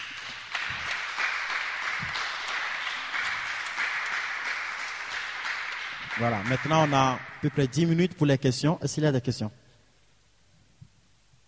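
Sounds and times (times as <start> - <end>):
church audience clapping for the Lord Jesus: 0.0 - 8.2
speech: 6.2 - 9.6.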